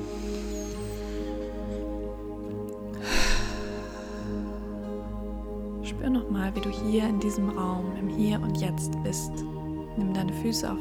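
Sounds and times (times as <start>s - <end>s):
breathing in through the nose and out through the mouth during a mindfulness exercise: 0.0s - 5.8s
sustained tonal drone: 0.0s - 10.7s
speech: 6.0s - 10.7s.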